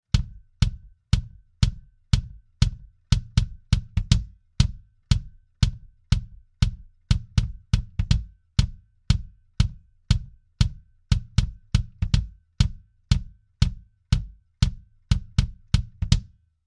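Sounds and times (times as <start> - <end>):
bass drum through Trident A Range EQ: 0.0 - 16.3.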